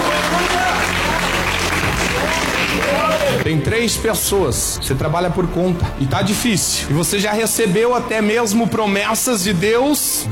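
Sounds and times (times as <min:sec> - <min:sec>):
church audience applauding: 0:00.0 - 0:03.5
speech: 0:03.5 - 0:10.3.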